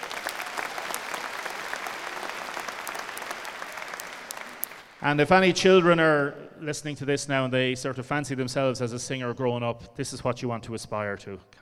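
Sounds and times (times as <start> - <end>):
audience round of applause in church: 0.0 - 5.1
speech: 5.0 - 11.6.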